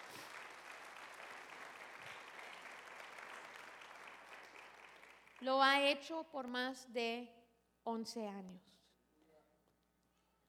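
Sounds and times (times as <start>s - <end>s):
audience applauding: 0.0s - 5.4s
speech: 5.4s - 8.8s.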